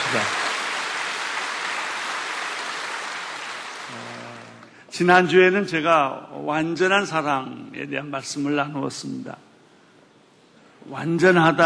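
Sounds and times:
audience applause: 0.0 - 4.7
speech: 0.1 - 0.4, 5.0 - 9.4, 10.9 - 11.6.

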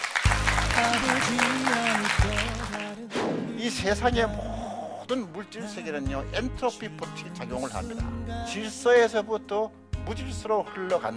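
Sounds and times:
audience applause: 0.0 - 3.0
speech: 3.7 - 4.5, 5.1 - 11.1.

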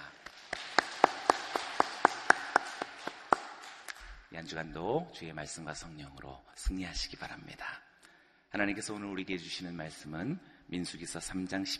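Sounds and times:
audience applauding: 0.0 - 4.1
speech: 4.3 - 7.8, 8.5 - 11.7.

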